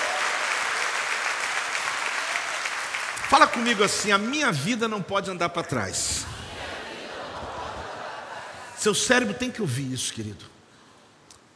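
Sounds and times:
crowd applauding: 0.0 - 4.4
speech: 3.3 - 6.4, 8.8 - 10.6
laughter: 6.2 - 9.1.

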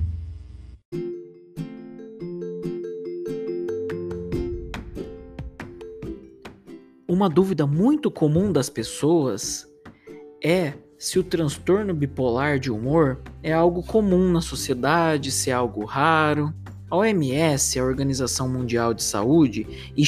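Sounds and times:
podcast intro jingle: 3.7 - 6.4
speech: 7.2 - 9.7, 10.4 - 20.0.

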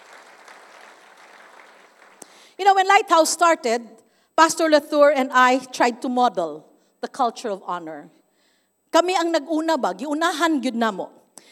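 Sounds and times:
crowd applause: 0.0 - 2.5
speech: 2.6 - 8.2, 8.9 - 11.2.

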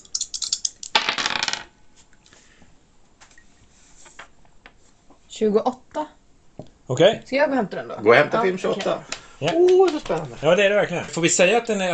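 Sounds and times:
dice rattling: 0.2 - 1.7
speech: 5.4 - 5.8, 6.9 - 11.9.

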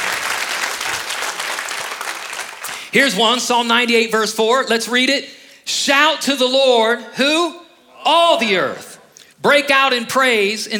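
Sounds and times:
audience applause: 0.0 - 2.9
speech: 2.9 - 10.7.

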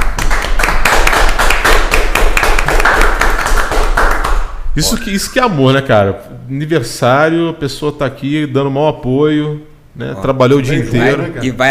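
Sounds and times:
hand clapping for the couple: 0.0 - 4.6
speech: 4.8 - 11.7.

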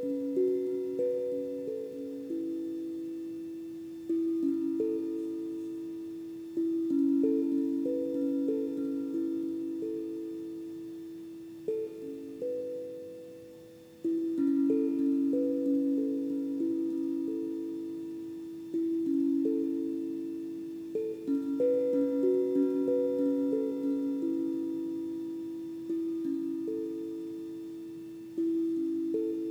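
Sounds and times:
crystal and Tibetan bowls ringing: 0.0 - 29.4.

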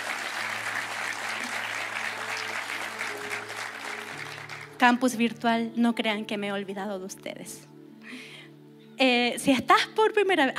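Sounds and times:
audience applause: 0.0 - 4.8
speech: 4.8 - 7.7, 9.0 - 10.5.

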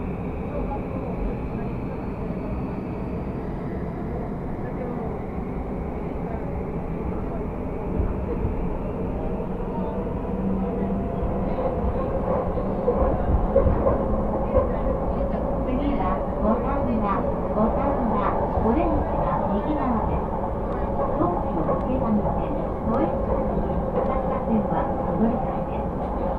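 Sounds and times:
commuter train running on the Tokyo lines: 0.0 - 26.3
voices: 0.0 - 26.3.

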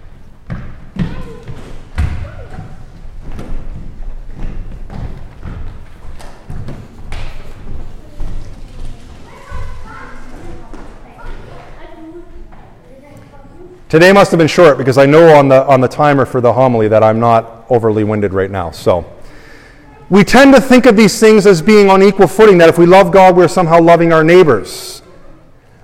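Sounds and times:
children coming in and taking seats: 0.5 - 14.8
speech: 13.9 - 19.2, 20.1 - 25.0.

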